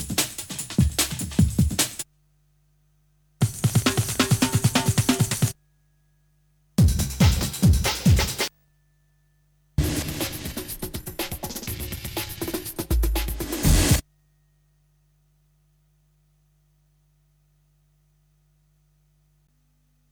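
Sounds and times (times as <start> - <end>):
breakbeat drums: 0.0 - 2.0, 3.4 - 5.6, 6.8 - 8.5, 9.8 - 14.0.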